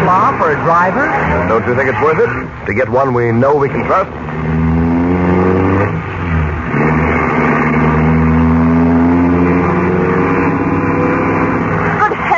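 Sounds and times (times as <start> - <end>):
car engine revving hard racing through narrow streets: 0.0 - 12.3
speech: 0.4 - 4.6.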